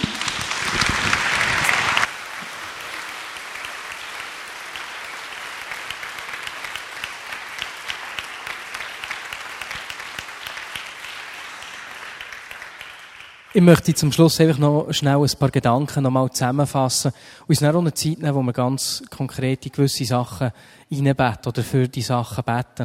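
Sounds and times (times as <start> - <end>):
warm applause: 0.0 - 14.2
speech: 13.6 - 22.8.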